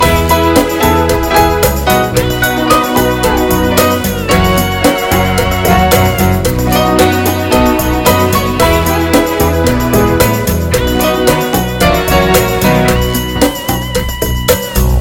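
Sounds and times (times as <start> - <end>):
slow and hot tango music: 0.0 - 15.0.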